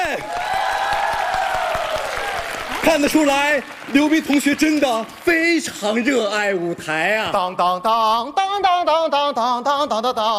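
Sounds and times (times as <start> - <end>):
audience applause: 0.0 - 6.1
speech: 2.9 - 10.3.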